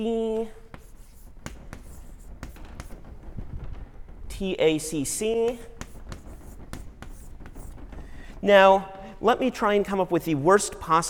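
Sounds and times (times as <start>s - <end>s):
speech: 0.0s - 0.6s, 4.4s - 5.7s, 8.4s - 11.0s
low hiss: 0.0s - 11.0s
pen writing on a board: 0.3s - 3.4s, 5.4s - 8.4s.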